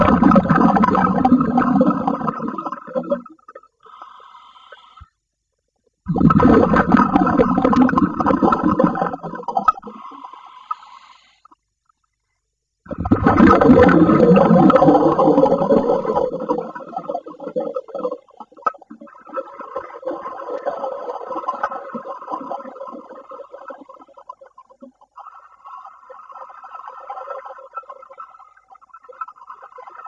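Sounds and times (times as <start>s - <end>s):
swimming underwater: 0.0s - 30.0s.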